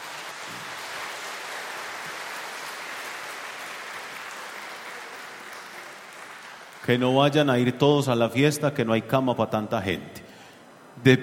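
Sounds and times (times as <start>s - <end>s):
applause: 0.0s - 7.6s
speech: 6.9s - 10.2s, 11.0s - 11.2s.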